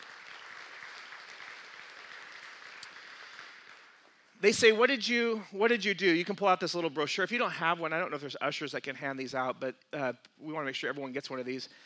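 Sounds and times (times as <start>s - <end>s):
audience round of applause: 0.0s - 4.1s
speech: 4.4s - 11.8s.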